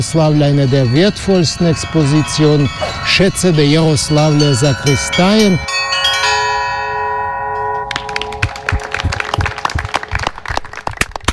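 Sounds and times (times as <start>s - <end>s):
speech: 0.0s - 6.2s
church bells rung by hand: 0.0s - 9.9s
applause: 7.9s - 11.3s.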